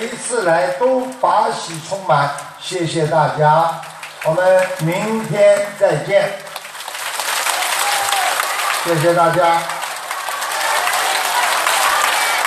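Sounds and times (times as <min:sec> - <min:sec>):
speech: 0:00.0 - 0:06.4, 0:08.8 - 0:09.8
large audience applause: 0:03.6 - 0:12.4.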